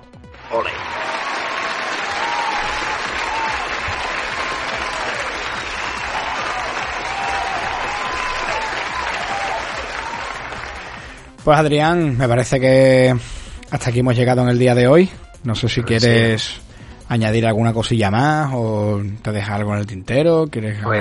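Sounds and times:
applause and crowd cheering sound effect: 0:00.0 - 0:11.5
speech: 0:00.5 - 0:01.0, 0:11.4 - 0:20.9.

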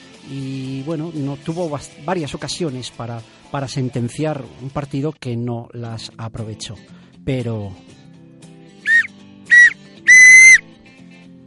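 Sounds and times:
speech: 0:00.2 - 0:08.0
referee's final whistle: 0:08.9 - 0:10.6.

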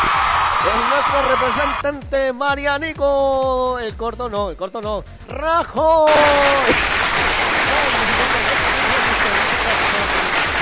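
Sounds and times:
speech: 0:00.6 - 0:07.0
applause sound effect: 0:06.1 - 0:10.6.

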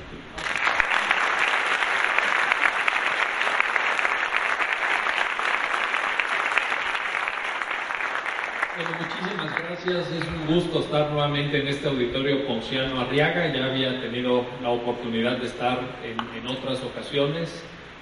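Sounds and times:
audience applause: 0:00.4 - 0:10.8
speech: 0:09.8 - 0:17.8.

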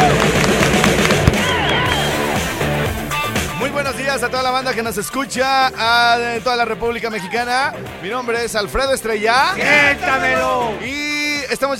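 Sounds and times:
audience applause: 0:00.0 - 0:02.8
audience cheering: 0:00.0 - 0:03.9, 0:09.2 - 0:10.9
speech: 0:04.2 - 0:11.7.

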